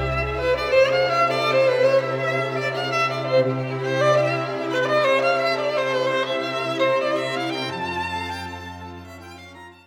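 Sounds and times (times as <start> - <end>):
solo violin in a violin concerto: 0.0 - 9.8
string quintet or string orchestra: 0.0 - 9.8.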